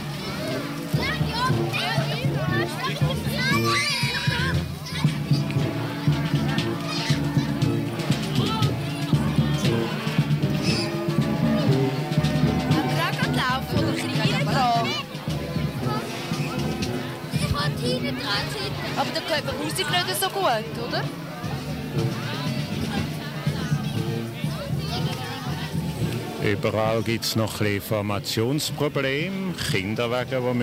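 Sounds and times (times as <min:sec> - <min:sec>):
children and adults chattering gathering for a lantern procession: 0:00.0 - 0:26.4
speech: 0:26.5 - 0:30.6.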